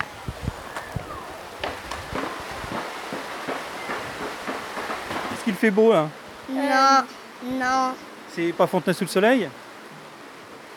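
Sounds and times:
heavy pouring rain: 0.0 - 10.7
raindrops striking a hard surface: 1.6 - 6.1
speech: 5.5 - 9.6.

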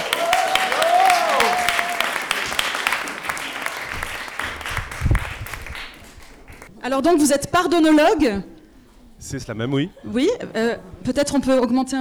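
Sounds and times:
audience applause: 0.0 - 6.7
speech: 6.9 - 8.5, 9.2 - 11.9.

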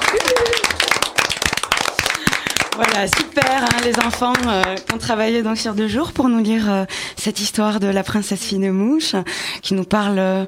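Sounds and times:
group of people applauding: 0.0 - 5.0
speech: 2.8 - 10.4.

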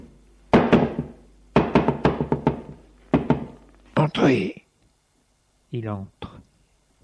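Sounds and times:
knocking on a wooden bedroom door: 0.5 - 3.6
speech: 4.0 - 4.6, 5.7 - 6.2.

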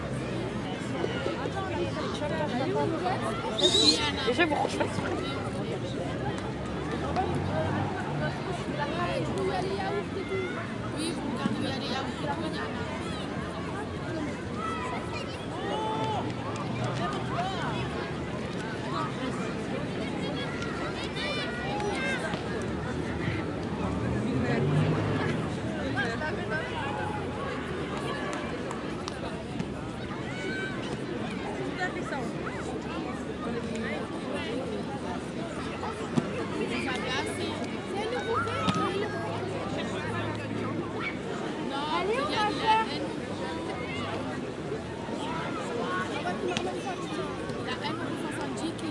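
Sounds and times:
crowd chatter on a busy city beach: 0.0 - 48.8
speech: 2.8 - 5.4.

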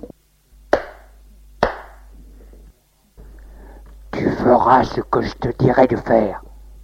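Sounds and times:
slap across the face: 0.7 - 2.0
speech: 4.2 - 6.8.

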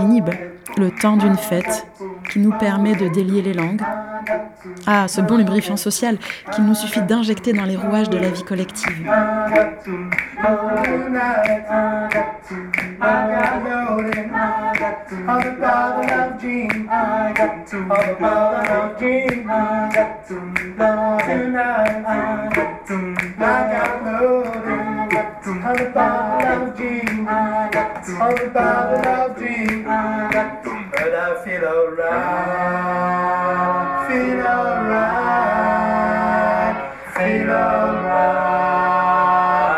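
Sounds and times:
speech: 0.0 - 35.8
choir singing in rehearsal: 0.0 - 39.7
rhythmic hand clapping: 0.0 - 39.7.

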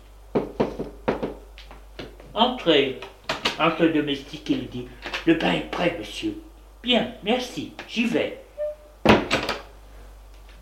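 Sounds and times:
knocking on a door: 0.3 - 1.4
speech: 2.4 - 8.4.

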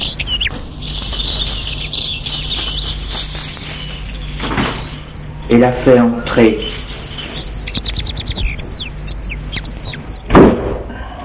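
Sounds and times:
birds chirping and tweeting: 0.0 - 10.3
speech: 5.5 - 6.9
door swinging shut with a solid thud: 10.3 - 10.8.

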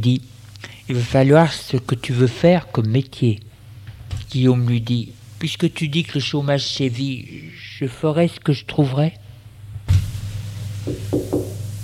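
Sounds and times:
speech: 0.0 - 3.5, 4.1 - 9.2
knocking on a door: 10.8 - 11.6.

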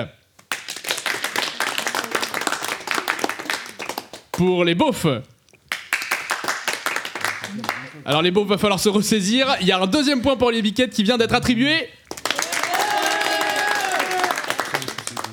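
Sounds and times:
audience clapping: 0.4 - 4.5, 5.7 - 8.3, 12.1 - 15.3
speech: 4.4 - 5.3, 7.5 - 12.0.

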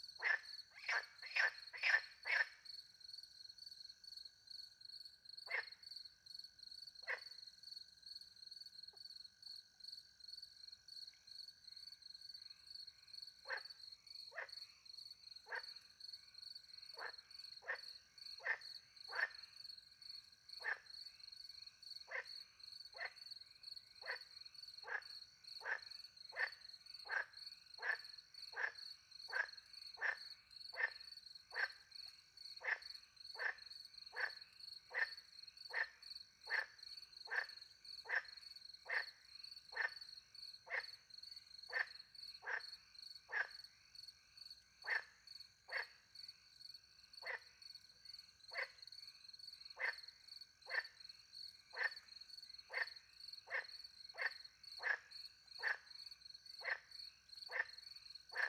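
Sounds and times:
frog croaking: 0.0 - 2.7, 5.4 - 5.8, 7.0 - 7.4, 13.4 - 16.1, 16.7 - 23.3, 23.9 - 43.8, 44.7 - 46.2, 47.1 - 47.6, 48.4 - 58.4.

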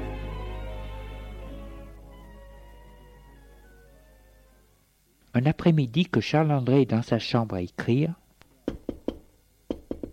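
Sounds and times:
speech: 5.4 - 8.2
knocking on a door: 8.7 - 10.1.

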